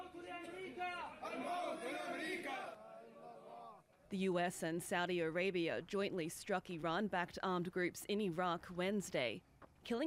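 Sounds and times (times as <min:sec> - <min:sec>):
mourning crowd chanting: 0:00.0 - 0:03.8
speech: 0:00.8 - 0:02.9, 0:04.1 - 0:10.0.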